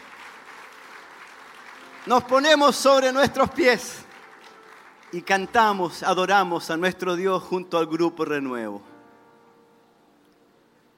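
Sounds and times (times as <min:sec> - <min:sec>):
audience applause: 0:00.0 - 0:05.9
speech: 0:02.0 - 0:04.1, 0:05.1 - 0:08.9.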